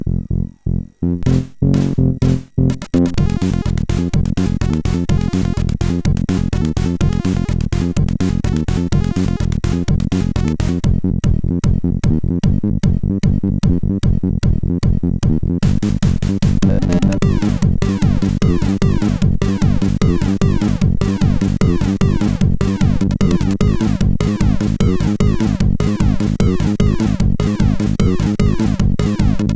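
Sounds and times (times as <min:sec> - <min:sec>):
techno music on a MOS6581R4 SID chip: 0:01.0 - 0:29.5.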